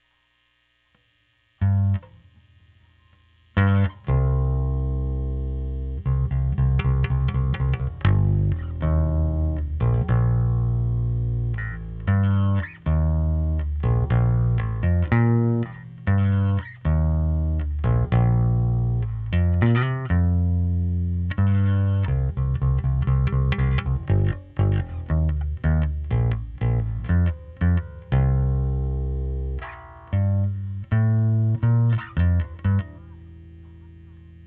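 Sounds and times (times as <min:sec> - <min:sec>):
overdriven bass: 0:00.5 - 0:34.4.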